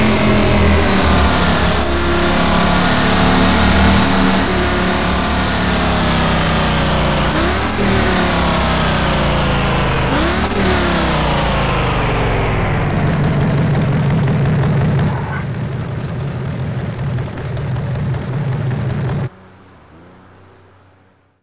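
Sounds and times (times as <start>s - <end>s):
2008 Spyker C12 Zagato engine: 0.0s - 21.4s.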